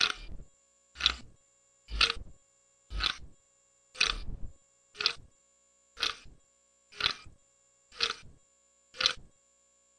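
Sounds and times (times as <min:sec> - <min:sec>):
clock: 0:00.0 - 0:00.3, 0:01.0 - 0:01.3, 0:01.9 - 0:02.3, 0:02.9 - 0:03.3, 0:04.0 - 0:04.4, 0:05.0 - 0:05.3, 0:06.0 - 0:08.4, 0:09.0 - 0:09.3.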